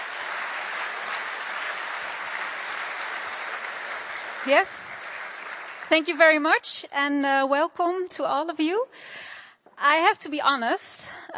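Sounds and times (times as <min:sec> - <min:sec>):
audience applause: 0:00.0 - 0:06.3
speech: 0:04.4 - 0:04.8, 0:05.9 - 0:11.3.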